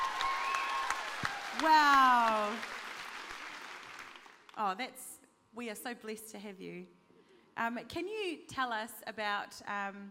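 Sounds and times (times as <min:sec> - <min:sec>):
audience applause: 0:00.0 - 0:04.5
speech: 0:01.6 - 0:02.8, 0:04.6 - 0:07.0, 0:07.6 - 0:10.1.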